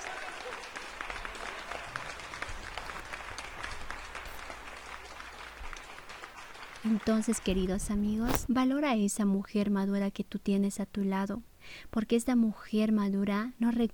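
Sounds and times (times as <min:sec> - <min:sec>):
applause: 0:00.0 - 0:07.9
speech: 0:06.8 - 0:13.9.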